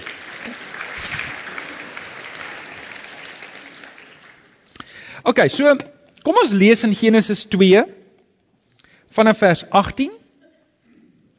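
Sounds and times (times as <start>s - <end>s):
audience clapping: 0.0s - 5.0s
speech: 5.3s - 8.0s, 9.1s - 10.2s.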